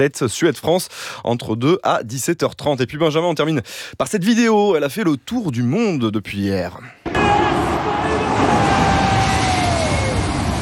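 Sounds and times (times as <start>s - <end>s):
speech: 0.0s - 7.1s
two large airliners flying: 7.1s - 10.6s.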